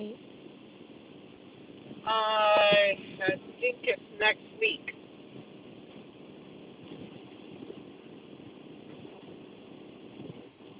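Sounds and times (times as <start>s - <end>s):
car engine drone while driving: 0.0s - 10.7s
speech: 2.1s - 2.6s, 3.2s - 4.9s.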